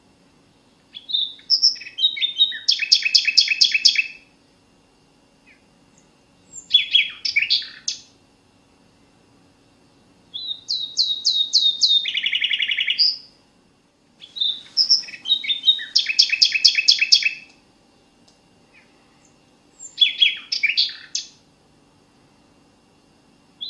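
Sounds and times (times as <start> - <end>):
common nightingale singing: 0.9 - 4.3, 5.5 - 8.1, 10.3 - 13.4, 14.2 - 17.5, 19.7 - 21.4.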